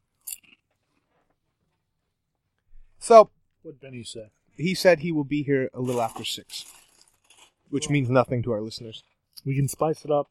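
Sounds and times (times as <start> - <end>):
speech: 3.1 - 6.8, 7.7 - 10.2
crunching spicy Canadian Szechuan sizzling potato chips: 5.9 - 7.7.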